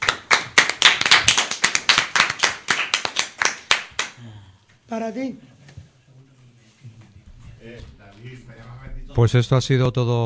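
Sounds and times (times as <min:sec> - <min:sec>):
applause: 0:00.0 - 0:04.2
speech: 0:04.2 - 0:05.6, 0:07.6 - 0:10.2.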